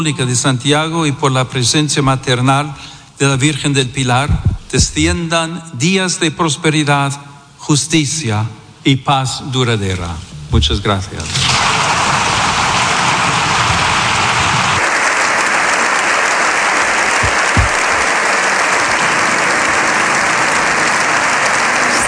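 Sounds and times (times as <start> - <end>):
speech: 0.0 - 12.0
standing ovation applause of deputies, senators and guests in parliament: 11.6 - 22.0.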